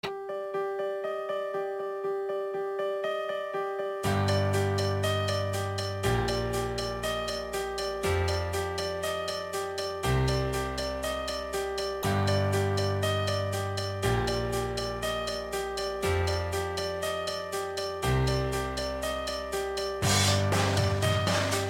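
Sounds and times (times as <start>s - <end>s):
piano intro: 0.1s - 21.6s.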